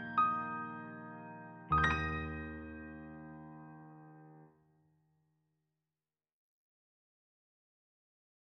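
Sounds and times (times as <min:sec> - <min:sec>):
Christmas carol on piano: 0:00.0 - 0:04.5.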